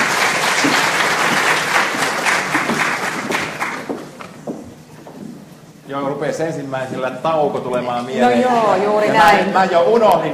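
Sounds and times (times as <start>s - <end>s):
audience applause: 0.0s - 4.2s
speech: 5.9s - 10.3s.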